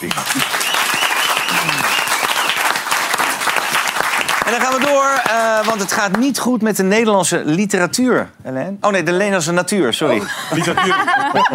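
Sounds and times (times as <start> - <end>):
speech: 0.0 - 0.6, 4.5 - 11.5
audience applause: 0.0 - 6.2
laughter: 10.2 - 11.5.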